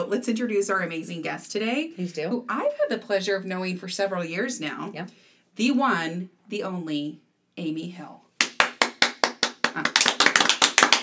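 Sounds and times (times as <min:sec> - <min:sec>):
speech: 0:00.0 - 0:08.2, 0:09.8 - 0:10.0
hosts clapping hands: 0:08.4 - 0:11.0.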